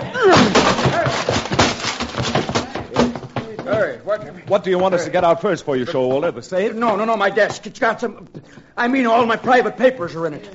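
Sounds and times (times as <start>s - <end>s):
door being forced open: 0.0s - 3.6s
speech: 3.8s - 10.5s.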